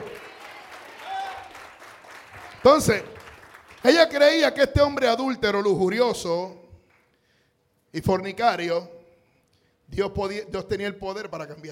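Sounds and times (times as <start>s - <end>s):
audience applauding loudly: 0.0s - 4.4s
speech: 2.6s - 3.1s, 3.8s - 6.6s, 7.9s - 9.0s, 9.9s - 11.7s.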